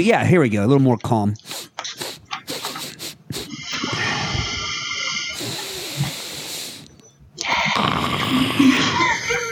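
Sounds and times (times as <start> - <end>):
speech: 0.0 - 1.7
sniff turning into a snort: 1.4 - 8.7
laughter: 8.6 - 9.5.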